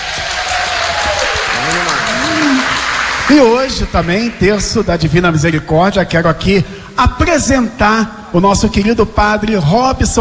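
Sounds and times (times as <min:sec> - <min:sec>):
voices cheering: 0:00.0 - 0:04.3
applause: 0:00.0 - 0:04.8
speech: 0:03.3 - 0:10.2.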